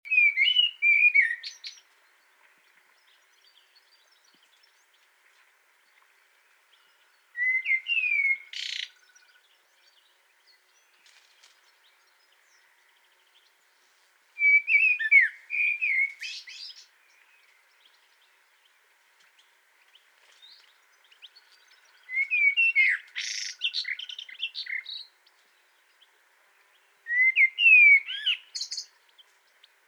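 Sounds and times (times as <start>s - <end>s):
Common blackbird whistled song: 0.1s - 1.8s, 7.4s - 9.4s, 14.4s - 17.3s, 22.0s - 25.1s, 27.0s - 29.0s.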